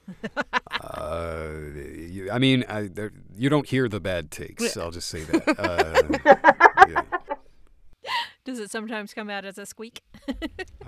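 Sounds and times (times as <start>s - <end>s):
laughter: 0.0s - 3.1s, 4.6s - 7.4s, 10.2s - 10.8s
speech: 0.2s - 0.4s, 2.2s - 7.0s, 8.5s - 10.8s
voice imitating a growl: 0.8s - 3.5s.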